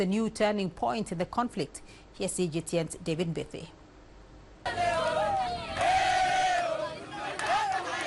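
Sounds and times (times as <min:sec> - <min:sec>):
speech: 0:00.0 - 0:03.8, 0:04.6 - 0:04.9
jubilant crowd in Sange cheering and shouting: 0:04.7 - 0:08.0.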